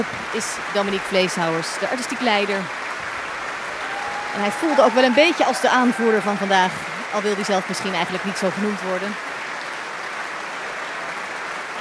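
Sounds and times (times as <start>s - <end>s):
speech: 0.0s - 2.9s, 4.4s - 9.3s
standing ovation applause: 0.0s - 11.7s.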